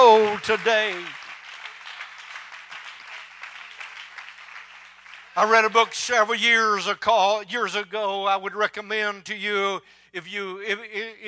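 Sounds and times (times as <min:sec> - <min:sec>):
crowd clapping hands: 0:00.0 - 0:06.3
speech: 0:00.2 - 0:01.2, 0:05.4 - 0:11.2.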